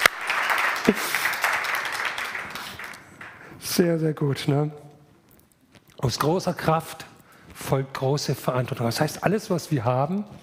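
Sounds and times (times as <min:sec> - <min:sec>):
audience applause: 0:00.0 - 0:03.6
speech: 0:00.9 - 0:01.2, 0:03.8 - 0:04.8, 0:06.0 - 0:10.4.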